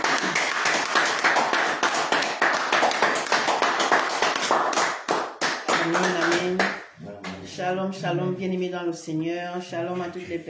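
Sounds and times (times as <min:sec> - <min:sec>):
audience clapping: 0:00.0 - 0:07.4
speech: 0:07.7 - 0:10.4.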